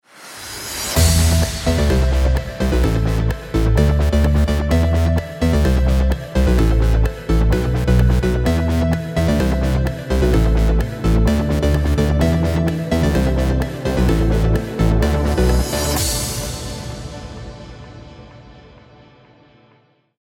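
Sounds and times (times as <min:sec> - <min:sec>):
music: 0:00.0 - 0:20.1.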